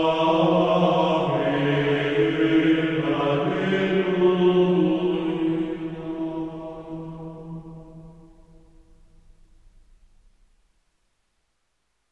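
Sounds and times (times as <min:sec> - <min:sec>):
schola choir singing Gregorian chant: 0:00.0 - 0:08.8.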